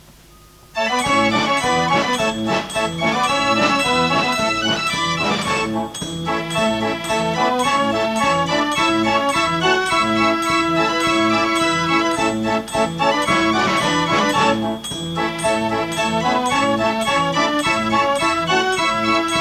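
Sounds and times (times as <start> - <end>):
Dutch street organ playing a barcarolle: 0.6 - 19.3.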